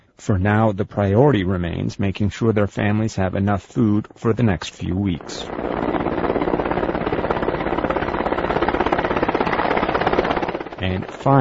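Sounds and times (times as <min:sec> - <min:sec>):
speech: 0:00.2 - 0:06.0, 0:10.8 - 0:11.3
helicopter flying across a valley: 0:05.2 - 0:11.3.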